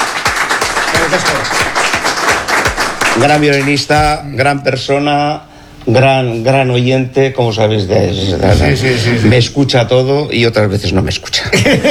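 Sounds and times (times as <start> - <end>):
audience applause: 0.0 - 3.8
rhythmic thumping pulse: 0.0 - 4.6
speech: 1.1 - 1.9, 3.2 - 11.8.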